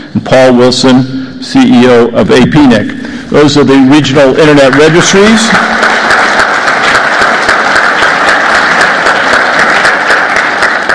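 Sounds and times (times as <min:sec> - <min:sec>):
speech: 0:00.1 - 0:05.8
audience applause: 0:04.6 - 0:10.9.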